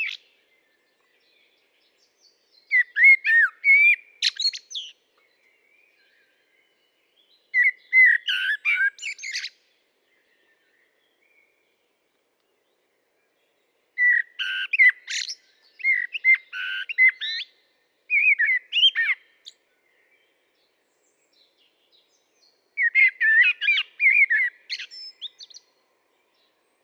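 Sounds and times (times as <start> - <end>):
common blackbird song: 0.0 - 26.8.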